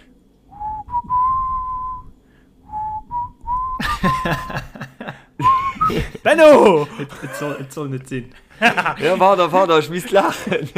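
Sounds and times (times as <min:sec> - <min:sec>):
low noise: 0:00.0 - 0:10.7
person whistling a rock song melody: 0:00.5 - 0:02.1, 0:02.7 - 0:04.6, 0:05.4 - 0:06.0
laughter: 0:03.8 - 0:07.7, 0:08.4 - 0:10.7
speech: 0:04.0 - 0:04.8, 0:05.9 - 0:10.7.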